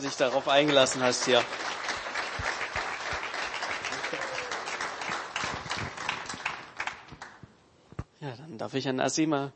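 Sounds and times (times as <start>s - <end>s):
speech: 0.0s - 2.5s, 8.6s - 9.5s
audience applause: 0.0s - 7.4s.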